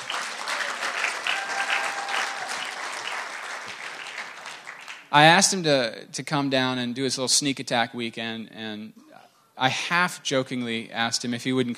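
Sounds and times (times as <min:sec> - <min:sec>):
audience applause: 0:00.0 - 0:05.1
speech: 0:05.1 - 0:09.0, 0:09.6 - 0:11.7.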